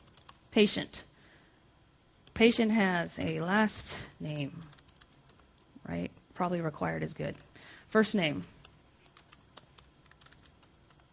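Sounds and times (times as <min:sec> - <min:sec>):
typing on a computer keyboard: 0:00.0 - 0:00.4, 0:04.6 - 0:05.5, 0:08.6 - 0:11.1
speech: 0:00.6 - 0:01.1, 0:02.4 - 0:04.8, 0:05.8 - 0:08.6.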